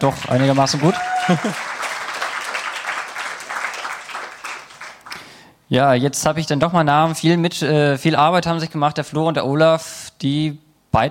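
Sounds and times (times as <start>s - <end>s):
speech: 0.0s - 1.7s, 5.7s - 11.0s
audience applause: 0.0s - 5.3s.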